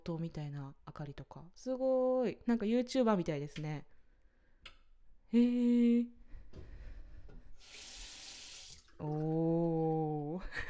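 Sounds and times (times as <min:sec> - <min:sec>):
speech: 0:00.0 - 0:04.0, 0:04.6 - 0:06.6, 0:09.0 - 0:10.6
tap water running into a washbasin: 0:06.7 - 0:10.3.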